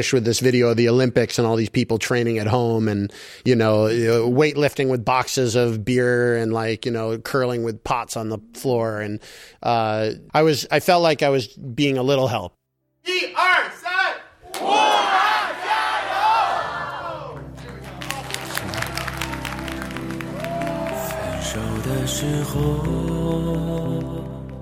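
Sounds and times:
speech: 0:00.0 - 0:13.4, 0:22.1 - 0:24.1
crowd chanting a slogan: 0:14.4 - 0:19.6, 0:20.3 - 0:23.0.

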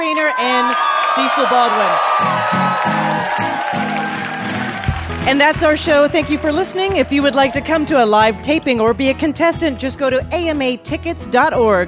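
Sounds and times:
audience applause: 0:00.0 - 0:07.9
speech: 0:00.3 - 0:03.9, 0:05.2 - 0:11.8.

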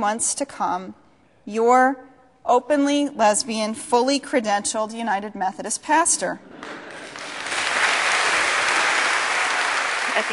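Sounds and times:
speech: 0:00.0 - 0:06.9, 0:10.2 - 0:10.3
audience applauding after sermon: 0:06.6 - 0:10.3.

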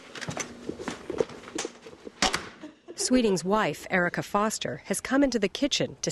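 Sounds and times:
footsteps of a man walking away from an angry beehive: 0:00.3 - 0:02.2
speech: 0:03.1 - 0:06.0.

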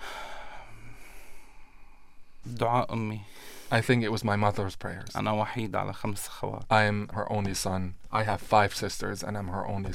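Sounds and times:
man in Syria taking a deep breath: 0:00.0 - 0:02.4, 0:03.2 - 0:03.7
speech: 0:02.6 - 0:09.9.

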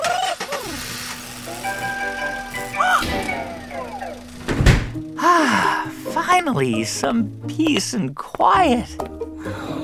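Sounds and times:
van engine starting and idling: 0:00.0 - 0:05.6
speech: 0:06.4 - 0:09.6.

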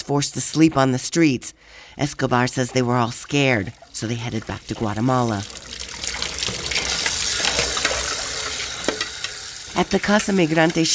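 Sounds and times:
speech: 0:00.1 - 0:05.8, 0:09.8 - 0:10.9
washing dishes with running water: 0:02.8 - 0:10.9.

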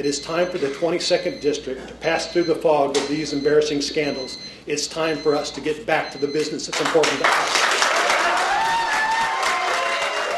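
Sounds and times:
speech: 0:00.0 - 0:07.7
Sugar Land Republicans crowd clapping for Tom DeLay: 0:06.7 - 0:10.3
cheering voices: 0:07.8 - 0:10.3.

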